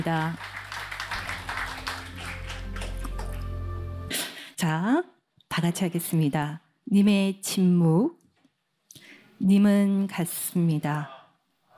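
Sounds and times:
speech: 0:00.0 - 0:00.6, 0:04.6 - 0:08.2, 0:09.4 - 0:11.2
crowd clapping: 0:00.0 - 0:04.0.

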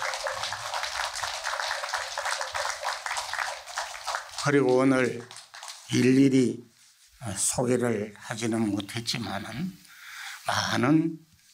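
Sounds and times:
audience applause: 0:00.0 - 0:06.2
speech: 0:04.4 - 0:09.8, 0:10.5 - 0:11.3.

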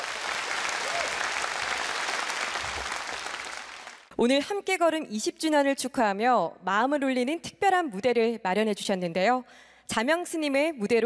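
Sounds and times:
audience applause: 0:00.0 - 0:04.1
speech: 0:04.2 - 0:11.0.

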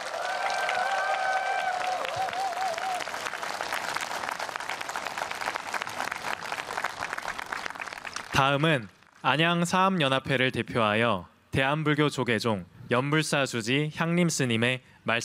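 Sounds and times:
audience applause: 0:00.0 - 0:09.2
speech: 0:08.4 - 0:15.2.

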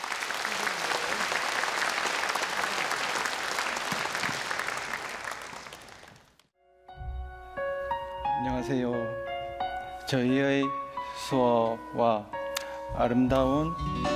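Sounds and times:
audience applause welcoming performers: 0:00.0 - 0:06.4
speech: 0:08.5 - 0:09.2, 0:10.1 - 0:14.1.

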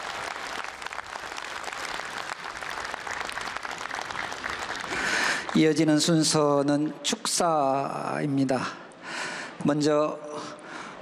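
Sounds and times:
crowd applauding: 0:00.0 - 0:06.0
speech: 0:05.6 - 0:08.8, 0:09.6 - 0:10.5.

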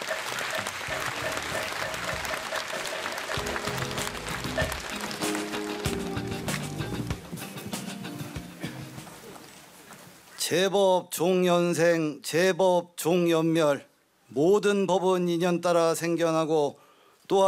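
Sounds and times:
audience applause: 0:00.0 - 0:07.3
speech: 0:10.5 - 0:17.4.

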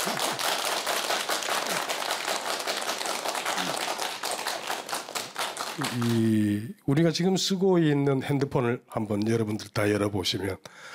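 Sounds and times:
crowd applauding: 0:00.0 - 0:06.4
speech: 0:05.8 - 0:10.9.

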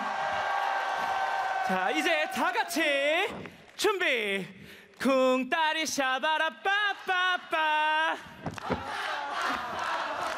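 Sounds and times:
crowd shouting and cheering: 0:00.0 - 0:03.6, 0:08.4 - 0:10.3
speech: 0:01.7 - 0:09.8.

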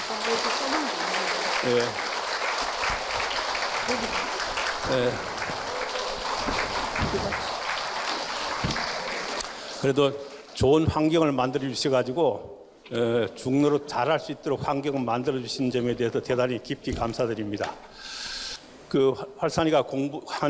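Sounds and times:
audience applause: 0:00.0 - 0:10.0
speech: 0:00.3 - 0:02.1, 0:03.9 - 0:05.6, 0:07.1 - 0:07.6, 0:09.8 - 0:18.1, 0:18.9 - 0:20.4.

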